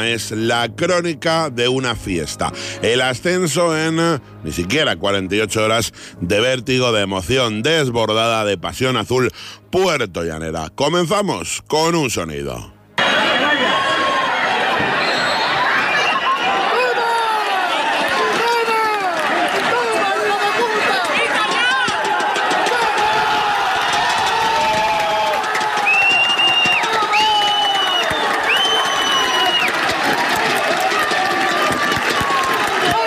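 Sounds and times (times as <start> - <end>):
speech: 0.0 - 12.8
football stadium crowd cheering at final whistle: 13.0 - 33.0
high whistle-like tones: 15.0 - 16.4, 25.8 - 29.8.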